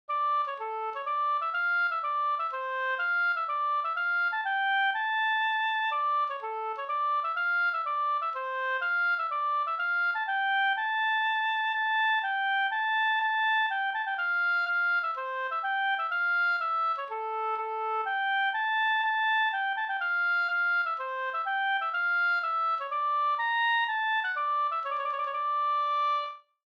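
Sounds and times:
polska folk dance tune: 0.1s - 26.3s.

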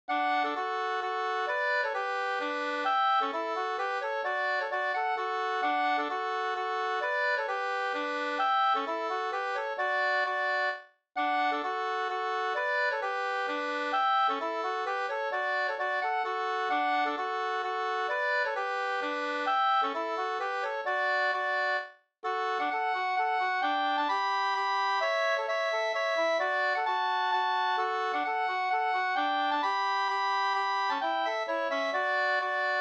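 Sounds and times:
hambo polska dance tune: 0.1s - 32.7s.

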